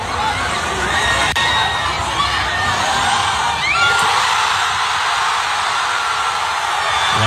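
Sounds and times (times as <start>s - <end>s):
street crowd cheering after game ends: 0.0s - 7.2s.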